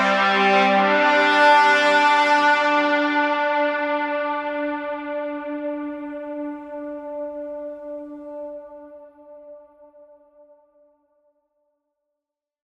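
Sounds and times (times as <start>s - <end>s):
mid-range brass stem in A minor at 60 BPM: 0.0s - 8.1s.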